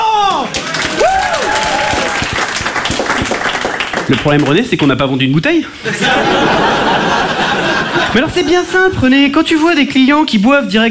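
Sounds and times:
audience applause: 0:00.3 - 0:04.9
speech: 0:04.1 - 0:10.8
laughter: 0:05.8 - 0:08.8.

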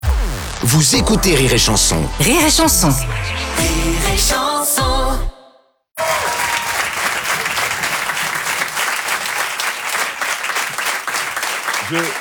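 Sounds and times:
speech: 0:00.6 - 0:05.3, 0:11.9 - 0:12.1
audience applause: 0:06.0 - 0:12.1.

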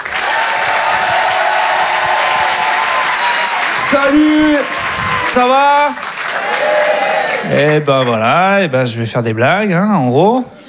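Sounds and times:
comedy club audience clapping: 0:00.0 - 0:08.8
comedy club crowd noise: 0:00.0 - 0:10.6
speech: 0:03.9 - 0:06.0, 0:07.5 - 0:10.6.

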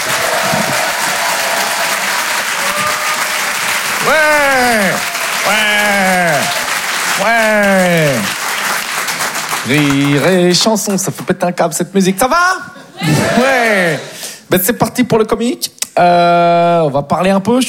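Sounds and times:
cheering whoops: 0:00.0 - 0:08.3
audience applause: 0:00.0 - 0:10.6
speech: 0:04.1 - 0:06.2, 0:09.7 - 0:17.6.

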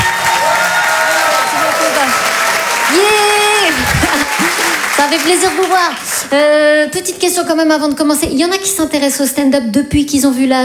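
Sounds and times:
audience applause for a comedian taking the stage: 0:00.0 - 0:06.8
crowd noise: 0:00.0 - 0:08.8
speech: 0:05.1 - 0:10.6.

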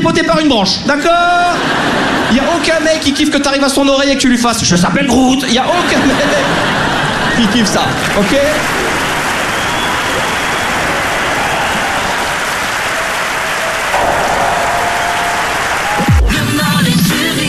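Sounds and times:
speech: 0:00.0 - 0:09.0
laughter: 0:01.2 - 0:03.2, 0:05.4 - 0:12.3
audience applause at end of comedy show: 0:05.8 - 0:17.4.

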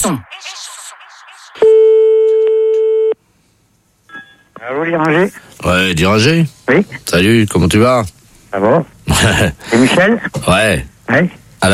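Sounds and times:
speech: 0:00.0 - 0:00.3, 0:04.6 - 0:11.7
telephone line tone after a caller hangs up: 0:01.6 - 0:03.2.

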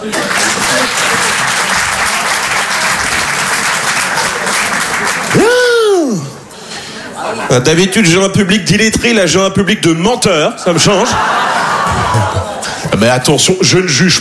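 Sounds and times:
speech: 0:00.0 - 0:00.4, 0:07.5 - 0:14.1
audience applause: 0:00.0 - 0:05.8, 0:11.6 - 0:12.7
laughter: 0:06.8 - 0:07.7, 0:10.7 - 0:13.2.

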